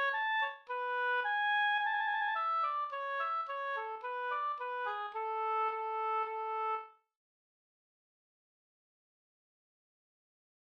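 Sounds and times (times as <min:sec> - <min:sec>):
folk walking tune: 0:00.0 - 0:06.8.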